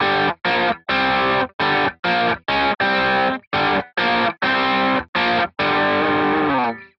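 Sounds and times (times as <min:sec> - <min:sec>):
guitar: 0:00.0 - 0:06.9.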